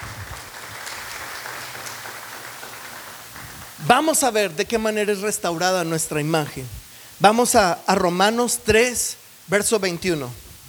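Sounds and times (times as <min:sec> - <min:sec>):
audience applause: 0:00.0 - 0:05.9
speech: 0:03.8 - 0:10.4.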